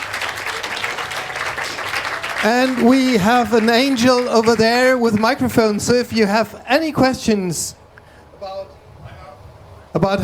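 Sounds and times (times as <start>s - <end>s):
audience applause after a talk: 0.0s - 6.2s
speech: 2.4s - 7.8s, 10.0s - 10.2s.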